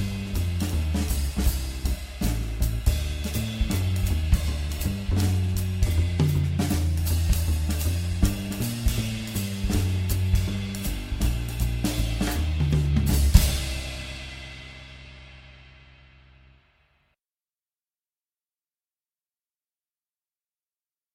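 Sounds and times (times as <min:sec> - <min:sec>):
piano: 0:00.0 - 0:15.1.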